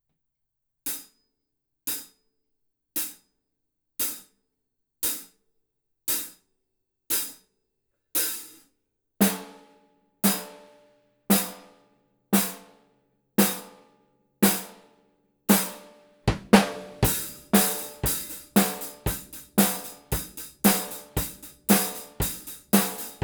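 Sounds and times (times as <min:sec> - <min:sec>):
drums: 0:00.9 - 0:01.1, 0:01.9 - 0:02.2, 0:03.0 - 0:03.3, 0:04.0 - 0:04.3, 0:05.0 - 0:05.4, 0:06.1 - 0:06.4, 0:07.1 - 0:07.5, 0:08.2 - 0:12.7, 0:13.4 - 0:13.8, 0:14.4 - 0:14.9, 0:15.5 - 0:23.2.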